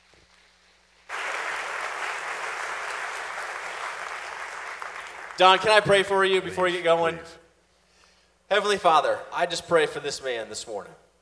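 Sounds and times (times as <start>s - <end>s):
audience applauding a speaker to the stage: 1.1s - 6.0s
speech: 5.4s - 7.4s, 8.5s - 11.0s.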